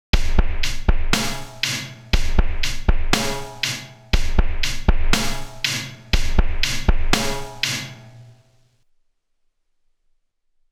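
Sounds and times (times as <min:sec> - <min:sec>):
drums: 0:00.0 - 0:08.6.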